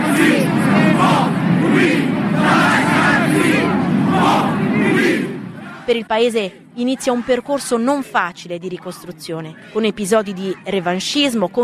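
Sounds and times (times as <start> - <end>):
dense roar of cheering: 0.0 - 5.9
huge crowd chanting protest slogan: 0.0 - 11.6
speech: 5.9 - 11.6.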